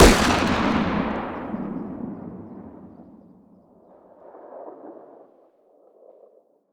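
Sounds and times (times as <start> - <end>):
distant pistol firing outdoors: 0.0 - 3.2.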